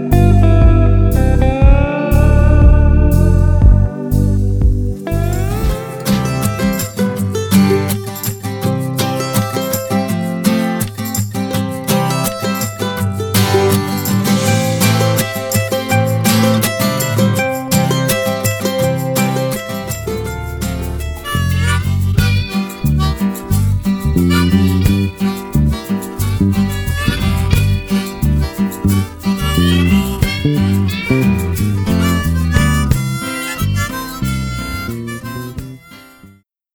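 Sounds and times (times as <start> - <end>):
acoustic folk country music mix: 0.0 - 36.4.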